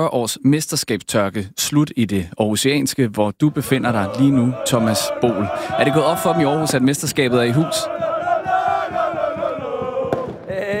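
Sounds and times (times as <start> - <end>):
speech: 0.0 - 8.1
large crowd celebrating AGF's Danish football championship on an Aarhus street: 3.5 - 10.7.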